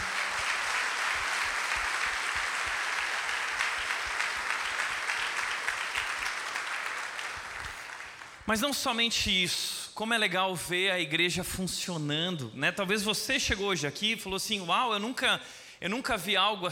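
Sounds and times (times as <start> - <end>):
audience applause: 0.0 - 8.5
speech: 8.5 - 16.6.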